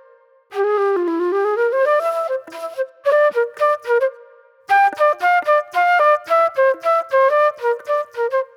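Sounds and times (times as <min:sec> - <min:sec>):
raw funk flute: 0:00.6 - 0:04.1, 0:04.7 - 0:08.5.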